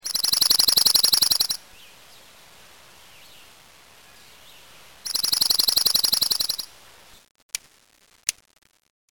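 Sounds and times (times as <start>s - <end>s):
dark-eyed junco buzzy trill: 0.0s - 1.6s, 5.0s - 6.8s.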